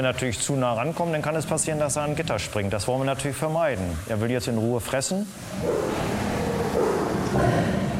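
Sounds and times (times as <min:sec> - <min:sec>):
speech: 0:00.0 - 0:07.8
tiger roaring while defending its prey: 0:05.4 - 0:07.9.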